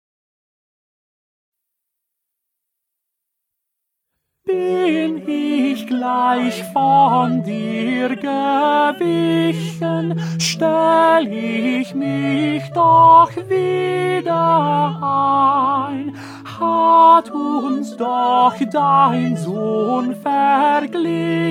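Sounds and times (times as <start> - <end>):
tenor singing: 4.5 - 21.4.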